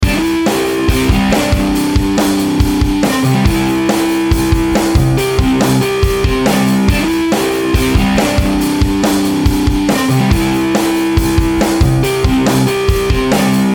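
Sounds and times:
trashy rock guitar riff with wah: 0.0 - 13.7.

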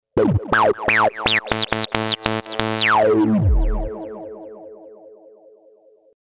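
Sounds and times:
acid sawtooth bassline: 0.2 - 4.5.

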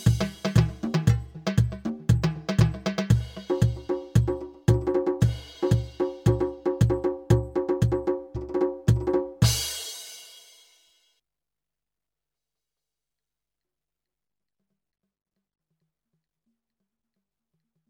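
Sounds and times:
Latin drum kit: 0.0 - 10.8.

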